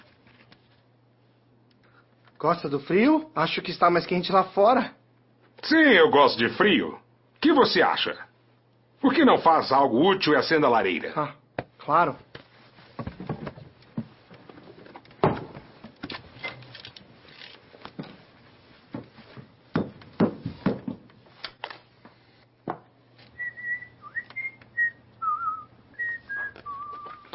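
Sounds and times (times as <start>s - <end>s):
speech: 2.4s - 5.0s, 5.6s - 8.3s, 9.0s - 12.3s
person whistling: 23.4s - 27.3s.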